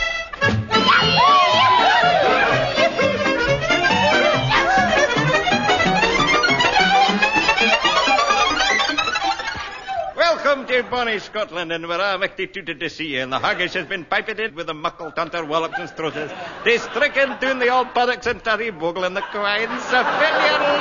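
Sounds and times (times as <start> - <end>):
club crowd celebrating New Year's Eve: 0.4 - 11.0, 16.1 - 17.6, 19.2 - 20.8
steady pulsing beat: 0.5 - 10.1
laughter: 0.8 - 11.6, 13.2 - 20.8
speech: 10.7 - 20.8.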